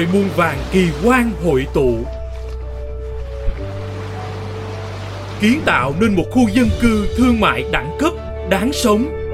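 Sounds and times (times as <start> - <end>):
ocean surf: 0.0 - 2.2, 3.1 - 8.0
speech: 0.0 - 2.2, 5.4 - 9.2.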